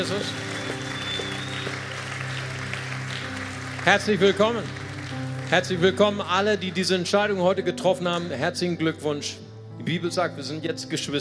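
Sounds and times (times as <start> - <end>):
speech: 0.0 - 0.5, 3.8 - 11.1
crowd clapping: 0.0 - 6.3
sustained low keyboard chord: 0.0 - 11.1.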